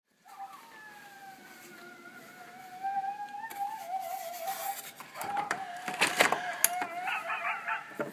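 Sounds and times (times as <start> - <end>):
several coyotes howling and yipping: 0.2 - 8.1.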